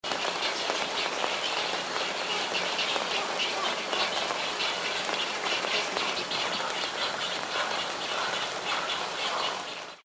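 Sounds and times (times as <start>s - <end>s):
rain: 0.0s - 10.0s
wood storks: 0.1s - 10.0s.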